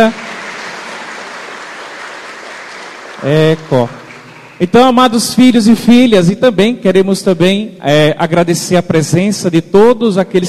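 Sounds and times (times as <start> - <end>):
speech: 0.0 - 0.2, 3.2 - 4.0, 4.6 - 10.4
congregation applauding at a Portuguese-language church gathering: 0.0 - 4.8.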